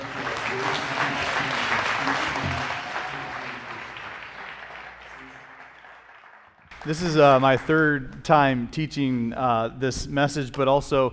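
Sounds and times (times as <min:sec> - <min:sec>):
church audience applauding to welcome a pastor: 0:00.0 - 0:08.0
speech: 0:06.9 - 0:11.1.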